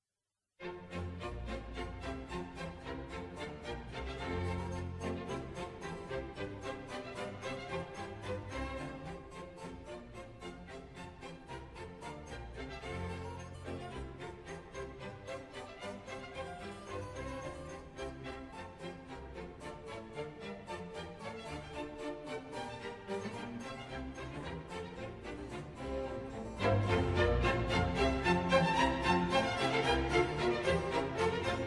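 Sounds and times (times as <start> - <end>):
baroque bourrée dance music: 0.6 - 31.6.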